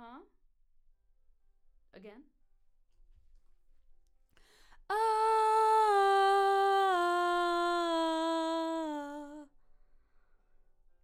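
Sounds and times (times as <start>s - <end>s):
background vocals: 4.8s - 9.5s.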